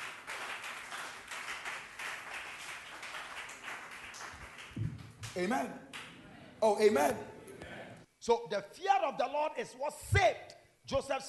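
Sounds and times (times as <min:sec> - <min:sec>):
audience clapping hands: 0:00.0 - 0:06.2
speech: 0:05.4 - 0:05.9, 0:06.6 - 0:07.3, 0:08.2 - 0:11.2.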